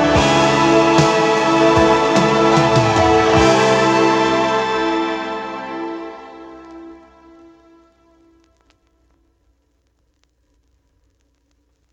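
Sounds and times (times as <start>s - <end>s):
concert: 0.0s - 8.9s.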